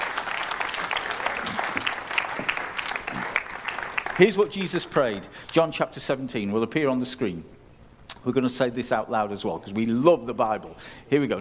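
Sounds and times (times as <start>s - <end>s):
audience applause: 0.0s - 5.1s
speech: 4.2s - 7.6s, 8.2s - 11.3s.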